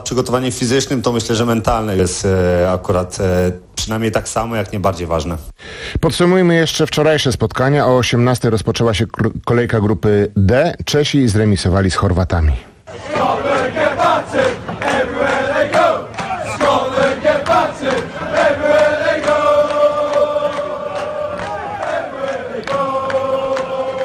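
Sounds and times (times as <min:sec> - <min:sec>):
speech: 0:00.0 - 0:15.9
Scottish football fans singing: 0:12.9 - 0:24.0.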